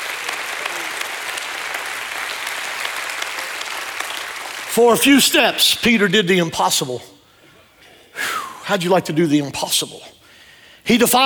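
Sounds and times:
hand clap of praise: 0.0 - 4.7
speech: 4.8 - 7.1, 8.7 - 10.2, 10.8 - 11.2.

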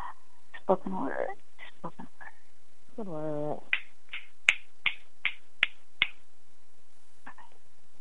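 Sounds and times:
speech: 0.7 - 2.0, 3.0 - 3.7
finger snapping: 3.7 - 6.2.

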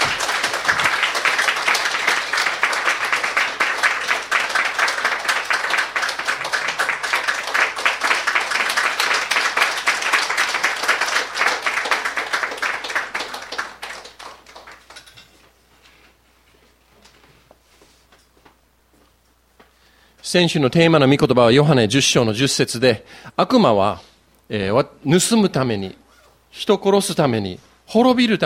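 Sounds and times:
audience applause of encouragement: 0.0 - 15.1
speech: 20.3 - 28.4.

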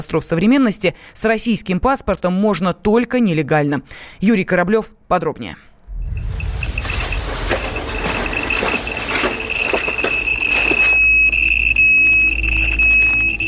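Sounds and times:
speech: 0.0 - 6.2
dosimeter high-pitched tone signalling high radiation in Pripyat: 5.9 - 13.4.

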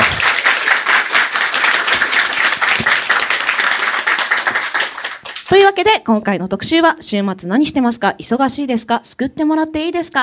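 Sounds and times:
crowd applause: 0.0 - 5.5
speech: 5.5 - 10.2.

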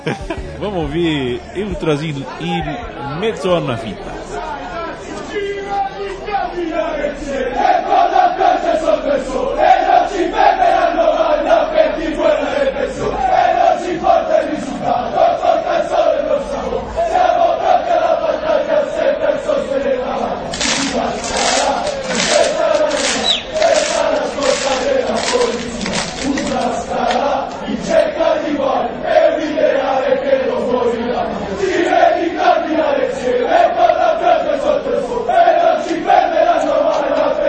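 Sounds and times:
rhythmic clapping or drum hits: 0.0 - 1.9, 20.5 - 27.3
speech: 0.0 - 4.4
laughter: 0.0 - 4.9, 20.3 - 28.0
large crowd of football supporters chanting: 0.0 - 37.4.

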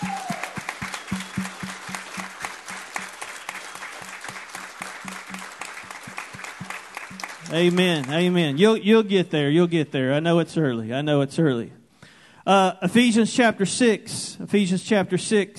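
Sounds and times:
regular thudding beat: 0.0 - 7.7
crowd applauding: 0.0 - 8.8
speech: 7.5 - 11.8, 12.5 - 15.5.

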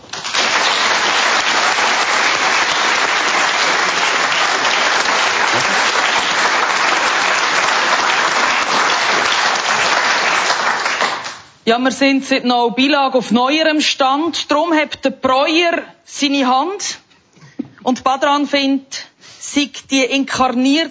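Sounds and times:
warm audience applause: 0.0 - 11.6
speech: 11.7 - 17.0, 17.8 - 20.8.

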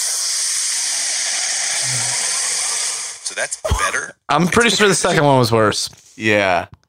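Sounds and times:
rushing hiss of masking noise from noise-cancelling fork: 0.0 - 3.3
speech: 3.3 - 6.8.

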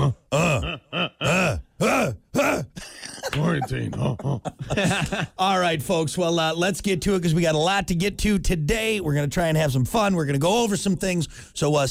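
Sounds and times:
person making caveman grunting noises: 0.0 - 3.3
speech: 0.3 - 0.8, 3.8 - 11.8
laughter: 3.0 - 5.4.

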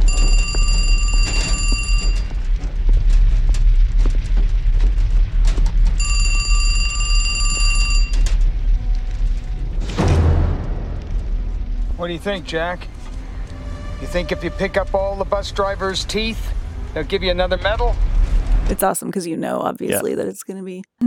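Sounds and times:
payphone ringing: 0.0 - 2.3, 6.0 - 8.4
constant low rumble: 0.0 - 18.9
loud sharp crash: 9.8 - 11.2
speech: 12.1 - 13.0, 14.0 - 18.1, 18.7 - 21.0.

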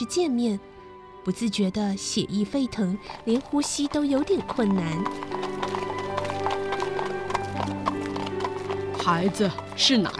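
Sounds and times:
speech: 0.0 - 5.5, 9.0 - 10.1
hooves of a horse pulling a carriage along a street: 3.0 - 10.1.

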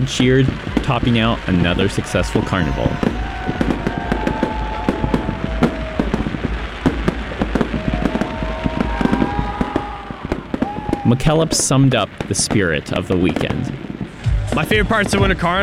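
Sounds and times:
speech: 0.0 - 3.2, 11.1 - 13.8, 14.5 - 15.6
fireworks booming and crackling: 0.0 - 15.6.

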